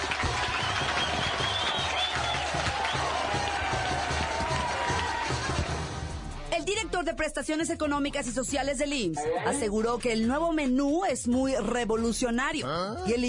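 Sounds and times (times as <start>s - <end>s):
large crowd cheering and clapping: 0.0s - 6.1s
shrill whistle-like tones: 0.5s - 3.2s
speech: 7.2s - 13.2s.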